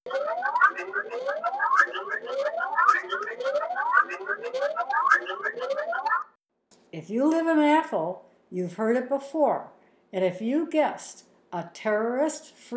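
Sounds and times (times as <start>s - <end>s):
patrol car siren in Athol: 0.1s - 6.3s
speech: 7.1s - 12.7s.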